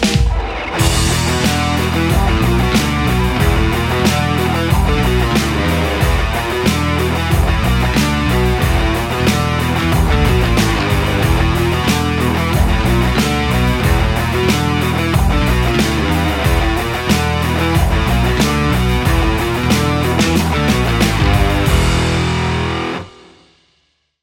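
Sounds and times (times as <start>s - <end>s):
Les Paul electric guitar: 0.2s - 23.4s.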